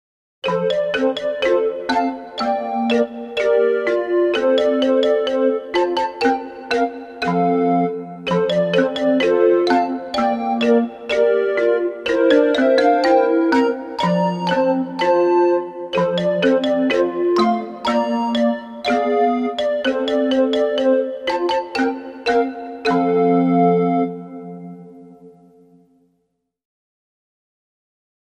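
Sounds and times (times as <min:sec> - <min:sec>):
Portuguese children's birthday song instrumental: 0:00.4 - 0:26.1.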